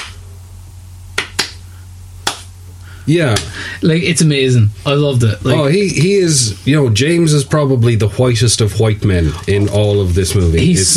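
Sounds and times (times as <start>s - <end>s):
rhythmic hand clapping: 0.0s - 0.2s, 1.1s - 2.6s, 3.3s - 3.6s
speech: 3.1s - 10.9s.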